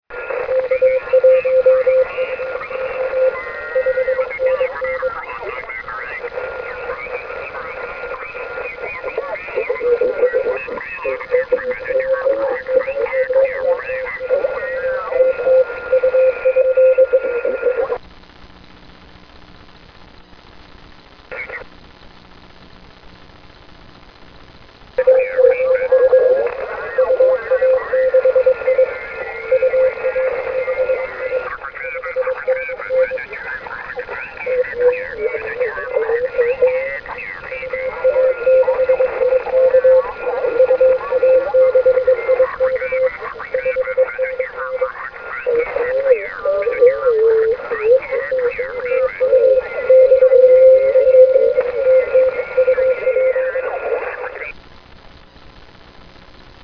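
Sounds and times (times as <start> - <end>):
SSB radio interference on the 160m band: 0.1 - 56.6.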